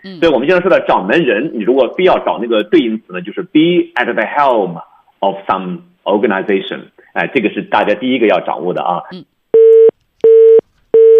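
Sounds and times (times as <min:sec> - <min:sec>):
speech: 0:00.0 - 0:09.4
telephone dial tone: 0:09.6 - 0:11.1.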